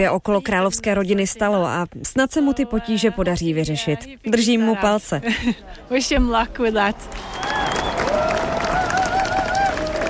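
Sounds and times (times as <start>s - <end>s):
speech: 0.0s - 7.5s
laughter: 5.2s - 6.1s
crowd applause: 6.9s - 10.0s.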